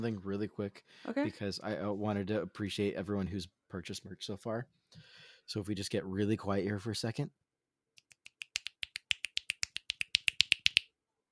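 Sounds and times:
speech: 0.0 - 7.4
finger snapping as a thank-you: 8.0 - 10.9.

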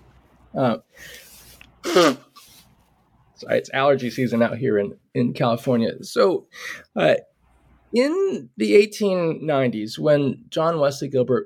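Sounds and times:
speech: 0.5 - 2.3, 3.4 - 7.3, 7.9 - 11.4
person sneezing: 1.8 - 2.6.

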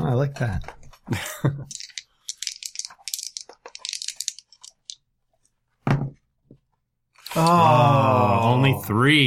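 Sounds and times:
speech: 0.2 - 1.8, 7.4 - 9.2
two six-sided dice rolled during a tabletop game: 1.7 - 5.0.

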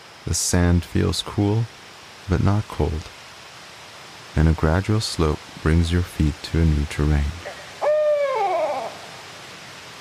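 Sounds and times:
speech: 0.2 - 3.2, 4.4 - 7.5
barred owl hooting: 7.4 - 9.3.

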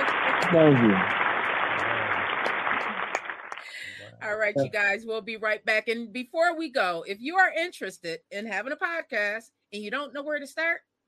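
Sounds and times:
round of applause: 0.0 - 4.1
speech: 0.5 - 1.2, 4.5 - 10.9.

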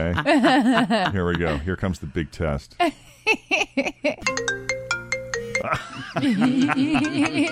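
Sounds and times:
laughter: 0.0 - 1.8, 5.6 - 7.5
speech: 0.0 - 4.6, 5.6 - 7.5
default iPhone ringtone: 4.2 - 5.7.

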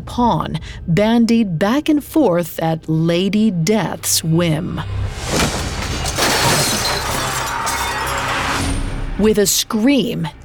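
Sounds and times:
speech: 0.0 - 5.6, 9.2 - 10.4
bowls shattering on the floor: 5.3 - 8.8.

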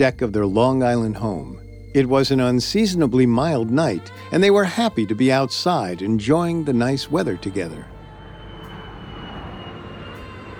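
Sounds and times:
speech: 0.0 - 7.9
jet airliner climbing after takeoff from a nearby major airport: 8.0 - 10.5.

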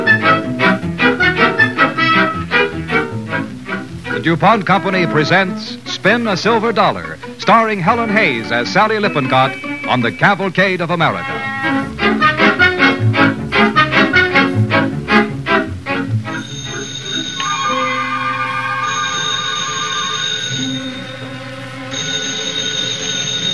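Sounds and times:
musical chords with high tones: 0.0 - 23.5
speech: 4.2 - 11.8
telephone bell ringing: 8.0 - 10.2, 16.3 - 23.5.

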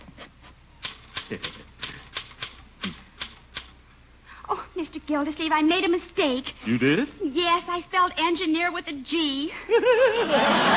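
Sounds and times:
typewriter keystrokes of a secretary typing a letter in an office: 0.8 - 3.8
speech: 1.3 - 1.7, 5.0 - 10.7
laughter: 9.5 - 10.7.

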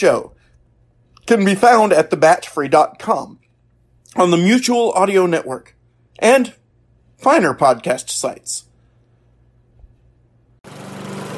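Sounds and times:
speech: 0.0 - 0.3, 1.3 - 3.4, 4.1 - 6.6, 7.2 - 8.7
lawn mower engine running: 10.7 - 11.3.

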